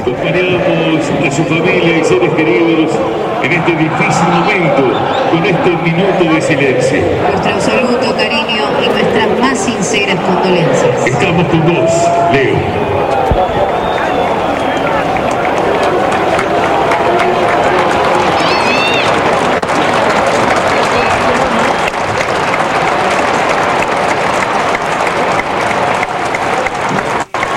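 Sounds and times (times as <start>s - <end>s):
stadium crowd applause: 0.0s - 27.5s
speech: 0.1s - 13.9s
whistles and shouts: 4.9s - 5.4s, 12.9s - 15.2s.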